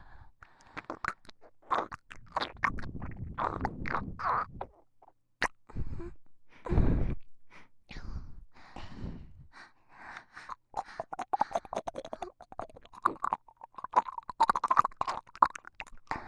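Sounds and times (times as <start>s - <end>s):
ear licking sounds on left and right: 0.4s - 5.7s, 10.2s - 16.2s.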